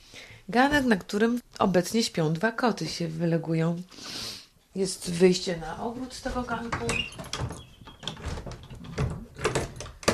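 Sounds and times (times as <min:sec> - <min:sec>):
speech: 0:00.5 - 0:07.6
padlock being opened: 0:07.3 - 0:10.1.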